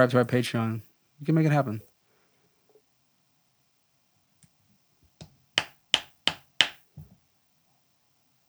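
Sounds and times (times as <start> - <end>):
speech: 0.0 - 1.9
dry skin-on-skin slapping: 5.6 - 6.8.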